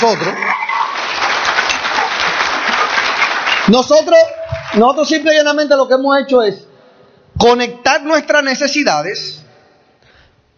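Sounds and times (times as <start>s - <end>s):
speech: 0.0s - 0.6s, 3.7s - 6.7s, 7.4s - 9.4s
audience applause: 0.0s - 5.4s.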